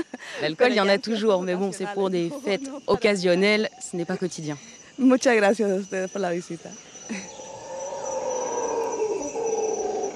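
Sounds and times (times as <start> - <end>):
speech: 0.0 - 7.3
howler monkeys howling: 7.0 - 10.1.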